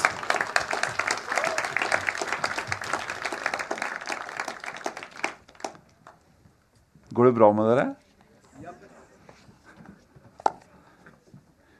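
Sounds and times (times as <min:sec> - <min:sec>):
audience applause: 0:00.0 - 0:06.2
speech: 0:07.2 - 0:08.0.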